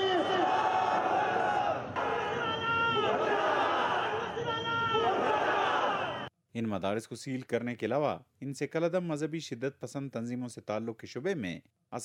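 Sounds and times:
rally crowd chanting slogans at a street sit-in in Quetta: 0.2s - 6.3s
speech: 6.6s - 12.0s.

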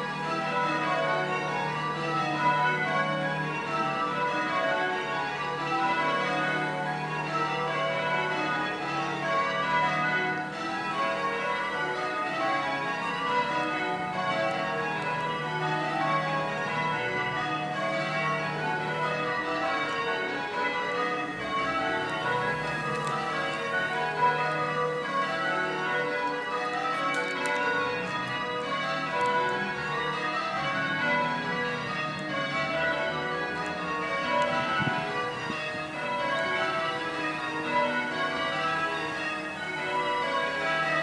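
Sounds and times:
church bells ringing: 0.0s - 41.0s
street ambience: 0.0s - 41.0s
gardening sounds: 21.8s - 25.2s, 25.8s - 29.8s.

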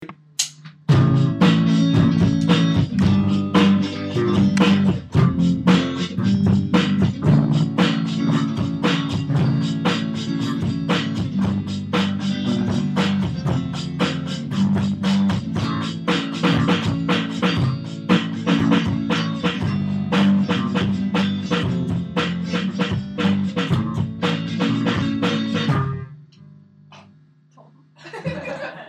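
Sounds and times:
syncopated music piece: 0.0s - 26.2s
laughter: 28.0s - 28.8s.

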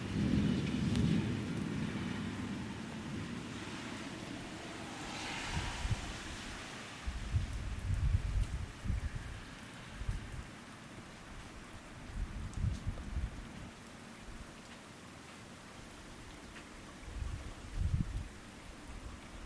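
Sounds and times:
sudden Fort Wayne thunderstorm: 0.0s - 10.4s, 12.1s - 13.7s, 17.1s - 18.3s.

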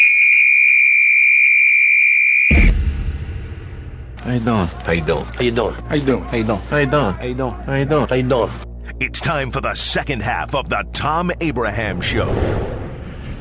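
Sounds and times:
whistle blown to start the clock: 0.0s - 2.8s
speech: 4.4s - 12.7s.

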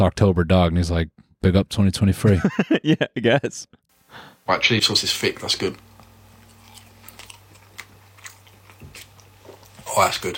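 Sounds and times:
speech: 0.0s - 5.9s, 10.0s - 10.3s
low electrical hum: 1.5s - 10.3s
laughter: 2.2s - 3.7s
person biting and chewing a fry: 5.9s - 10.0s.

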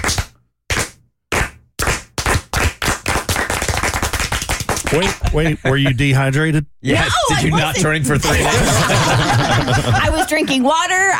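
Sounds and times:
slow clap building into applause from a small group: 0.0s - 5.2s
speech: 4.9s - 11.1s
laughter: 5.2s - 6.2s, 7.1s - 11.1s.

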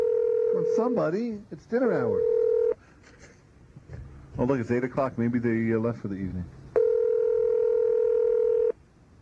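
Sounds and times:
telephone line tone on an outgoing call: 0.0s - 1.0s, 2.2s - 2.8s, 6.8s - 8.8s
speech: 0.7s - 2.4s, 4.4s - 6.6s.

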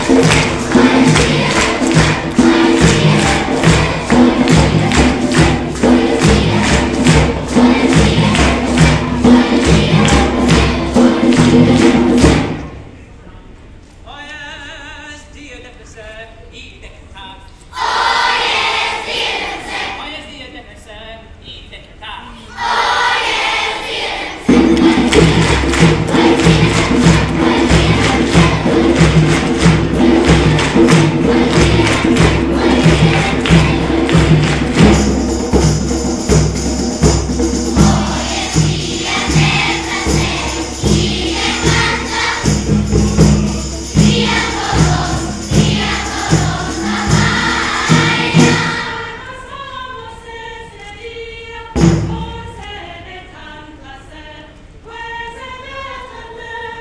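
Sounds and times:
children singing: 0.0s - 12.6s, 17.7s - 20.1s, 22.5s - 36.0s, 36.7s - 49.8s
tribal drum beats: 0.0s - 12.8s, 24.4s - 49.2s.

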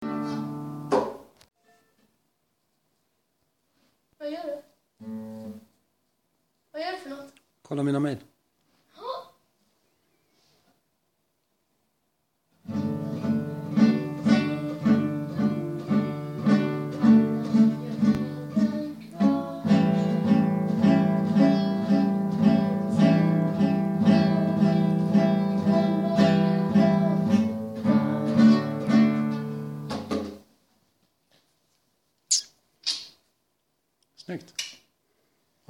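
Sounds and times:
guitar playing: 0.0s - 0.9s, 5.0s - 5.7s, 12.6s - 30.0s.

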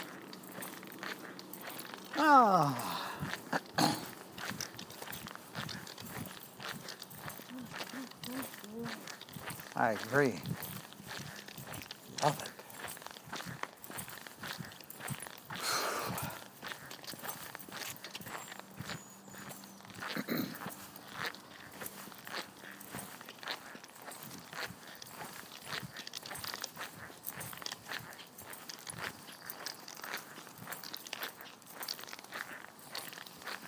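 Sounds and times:
footsteps in squeaky shoes: 0.0s - 33.6s
speech: 2.2s - 3.3s, 9.8s - 10.5s, 12.2s - 12.5s.

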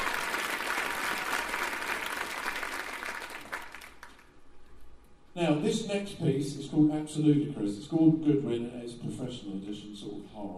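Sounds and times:
audience applause: 0.0s - 4.3s
speech: 5.4s - 10.5s.

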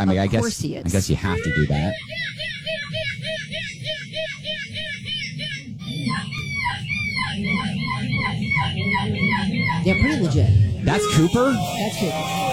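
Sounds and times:
speech: 0.0s - 2.4s, 7.4s - 12.5s
boy imitating seagull screech: 2.1s - 10.2s.

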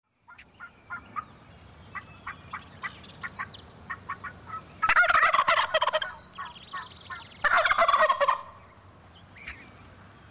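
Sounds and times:
wild turkey gobbling: 0.3s - 1.3s, 2.0s - 8.6s.

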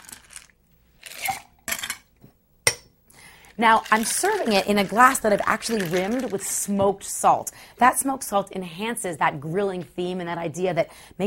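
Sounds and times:
ice rattling in a cocktail shaker with iced tea: 0.0s - 1.5s, 3.6s - 6.7s
speech: 3.6s - 11.2s.

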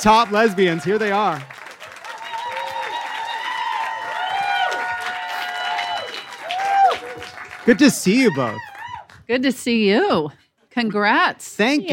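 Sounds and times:
speech: 0.0s - 1.6s, 7.7s - 8.7s, 9.3s - 11.9s
audience applause for two comedians: 0.0s - 9.2s.

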